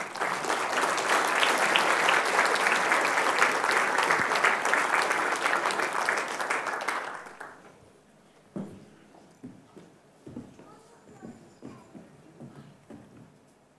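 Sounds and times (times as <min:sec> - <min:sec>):
applause: 0:00.0 - 0:07.7.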